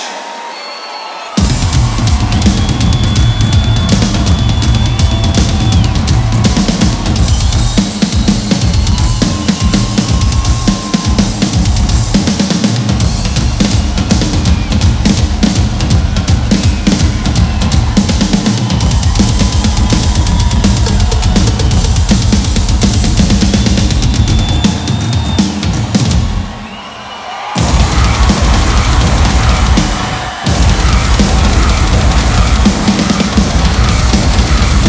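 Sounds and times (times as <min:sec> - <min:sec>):
live drum solo: 0:01.4 - 0:26.7, 0:27.5 - 0:34.8.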